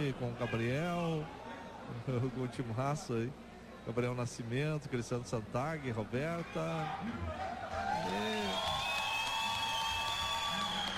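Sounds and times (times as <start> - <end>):
speech: 0.0 - 8.7
sports crowd cheering in Palmeiras das Missões: 6.6 - 10.9.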